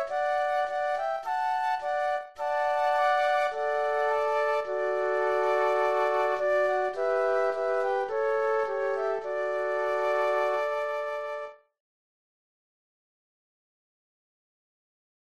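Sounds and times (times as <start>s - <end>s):
flute trio playing a Christmas piece: 0.0s - 11.6s.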